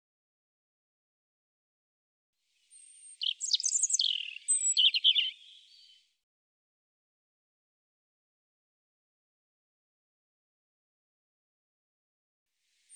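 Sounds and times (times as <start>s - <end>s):
European robin singing: 2.6s - 6.0s.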